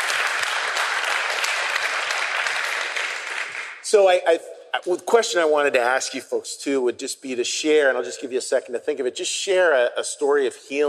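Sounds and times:
crowd applauding: 0:00.0 - 0:03.8
speech: 0:03.9 - 0:10.8.

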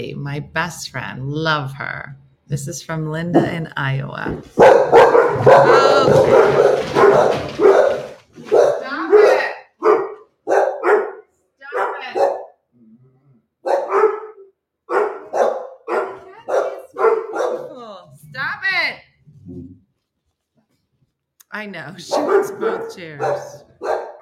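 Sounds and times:
speech: 0:00.0 - 0:07.6, 0:21.6 - 0:23.7
dog growling and barking: 0:04.5 - 0:20.0, 0:22.1 - 0:24.2.

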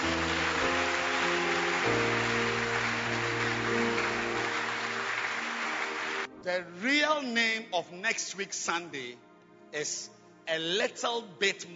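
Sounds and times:
audience clapping hands: 0:00.0 - 0:06.3
speech: 0:06.5 - 0:11.7.

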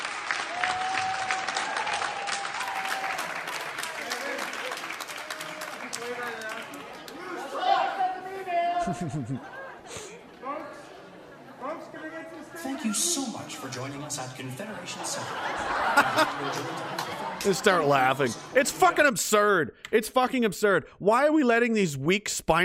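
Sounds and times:
audience clapping: 0:00.0 - 0:07.5, 0:16.0 - 0:18.3
laughter: 0:06.0 - 0:10.4, 0:14.6 - 0:18.8
speech: 0:08.9 - 0:10.0, 0:12.8 - 0:22.6.

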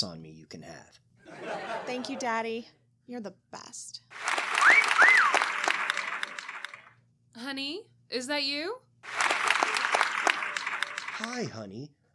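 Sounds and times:
speech: 0:00.0 - 0:04.3, 0:07.4 - 0:09.2, 0:11.2 - 0:12.0
laughter: 0:01.3 - 0:02.5, 0:09.1 - 0:11.6
audience clapping: 0:04.1 - 0:06.9, 0:09.0 - 0:11.5.

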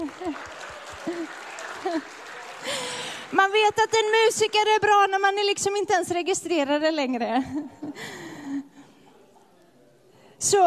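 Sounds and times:
laughter: 0:00.0 - 0:02.9
audience applause: 0:00.0 - 0:04.8
speech: 0:01.9 - 0:02.2, 0:03.4 - 0:08.2, 0:10.4 - 0:10.6.

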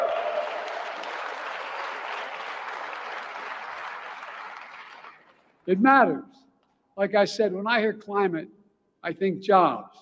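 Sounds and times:
crowd applauding: 0:00.0 - 0:05.6
speech: 0:05.7 - 0:06.4, 0:07.0 - 0:09.9.

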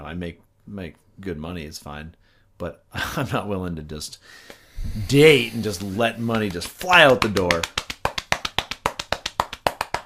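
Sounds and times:
speech: 0:00.0 - 0:07.8
hand slapping chest: 0:04.5 - 0:10.0.

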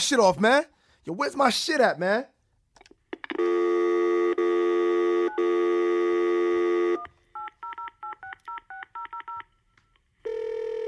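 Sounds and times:
speech: 0:00.1 - 0:02.4, 0:03.3 - 0:03.8
telephone ringing: 0:03.4 - 0:09.4, 0:10.3 - 0:10.8.

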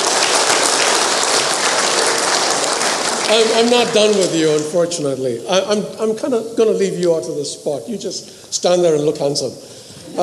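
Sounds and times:
round of applause: 0:00.0 - 0:04.8
speech: 0:03.3 - 0:10.2.

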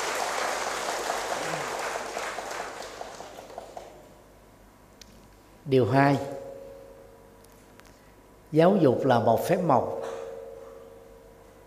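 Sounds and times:
crowd applauding: 0:00.0 - 0:04.1
speech: 0:05.7 - 0:06.4, 0:08.5 - 0:10.1.

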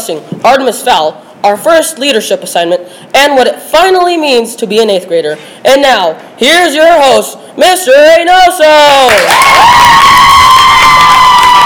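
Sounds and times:
speech: 0:00.0 - 0:10.2
audience applause: 0:09.1 - 0:11.6.

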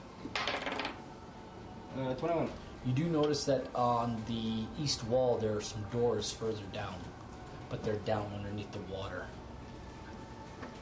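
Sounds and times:
dice being rolled: 0:00.2 - 0:01.0
speech: 0:02.0 - 0:09.4.

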